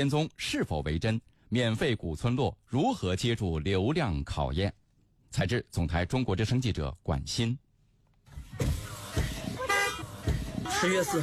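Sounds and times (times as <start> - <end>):
speech: 0.0 - 7.6, 10.7 - 11.2
car horn honks on a narrow village road: 8.6 - 11.2.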